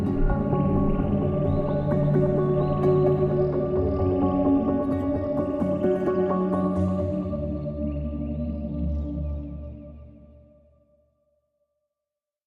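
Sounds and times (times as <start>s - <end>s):
submerged drone: 0.0s - 9.7s.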